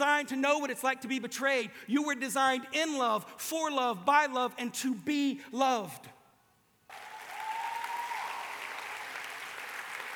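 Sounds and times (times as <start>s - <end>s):
speech: 0.0s - 6.2s
audience clapping: 6.9s - 10.1s.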